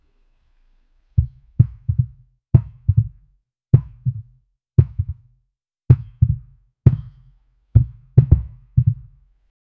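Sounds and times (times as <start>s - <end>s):
deep hollow bounce of a basketball: 1.2s - 3.2s, 3.8s - 5.2s, 5.9s - 9.1s.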